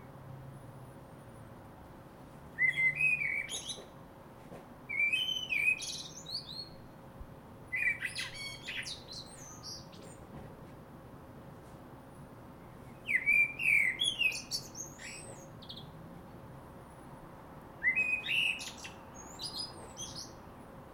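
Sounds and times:
common blackbird singing: 2.6 - 3.9, 4.9 - 6.9, 7.7 - 10.2, 12.9 - 16.0, 17.8 - 20.4.

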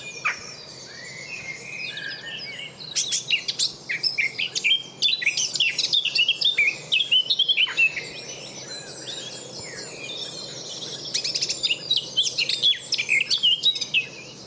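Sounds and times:
Eurasian blackcap Sylvia atricapilla singing: 0.0 - 14.4.

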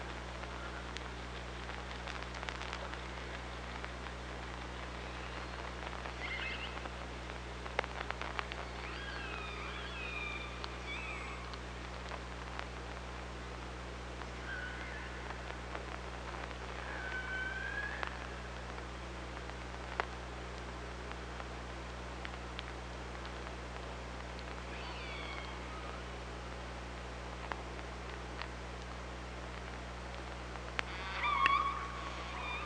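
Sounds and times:
background hiss: 0.0 - 32.6
killer whale calls: 5.0 - 6.9, 8.5 - 11.6, 16.8 - 18.4, 24.6 - 26.1, 30.9 - 32.6.

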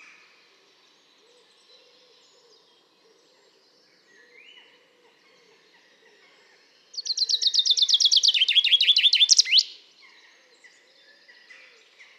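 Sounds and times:
common chaffinch Fringilla coelebs singing: 0.0 - 12.1.

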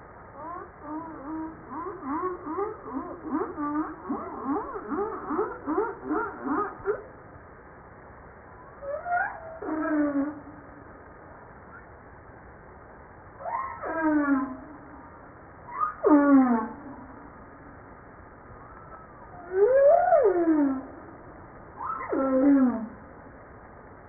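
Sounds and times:
humpback whale song: 0.4 - 7.1, 8.6 - 10.8, 13.4 - 17.8, 18.5 - 23.3.

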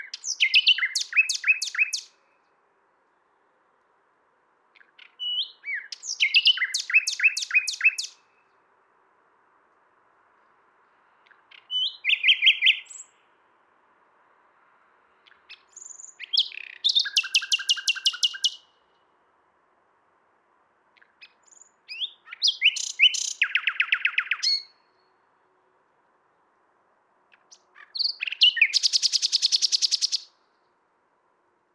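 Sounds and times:
common nightingale singing: 0.0 - 2.6, 4.7 - 8.6, 10.4 - 13.3, 15.2 - 19.0, 20.9 - 25.2, 27.3 - 30.4.

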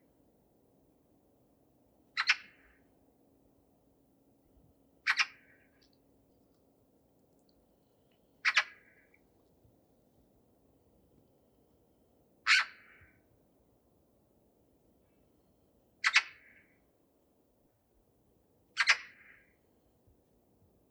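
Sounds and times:
Eurasian magpie giving harsh rasping calls: 5.1 - 5.6, 8.4 - 9.0, 12.5 - 13.0.

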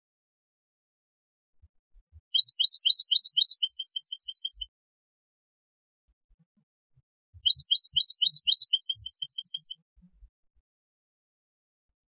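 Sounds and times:
European goldfinch Carduelis carduelis twittering: 2.4 - 4.6, 7.4 - 9.8.

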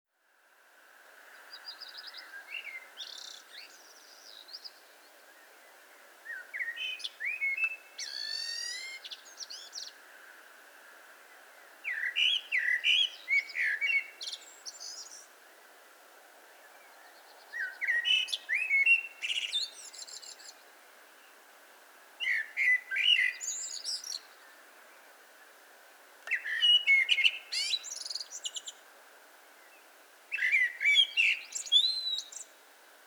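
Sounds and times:
Eurasian blackbird singing: 6.3 - 10.0, 11.9 - 15.3, 17.0 - 20.6, 22.2 - 24.4, 26.3 - 28.8, 30.3 - 32.5.

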